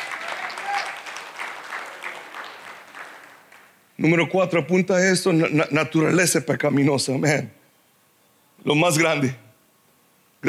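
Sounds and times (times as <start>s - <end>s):
audience applause: 0.0s - 3.8s
speech: 4.0s - 7.6s, 8.6s - 9.4s.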